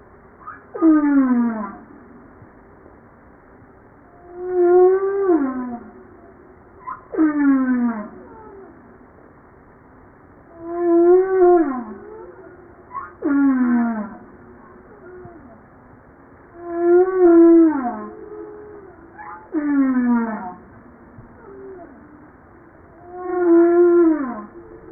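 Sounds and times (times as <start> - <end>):
humpback whale song: 4.1 - 8.9, 10.5 - 15.7, 16.5 - 24.9.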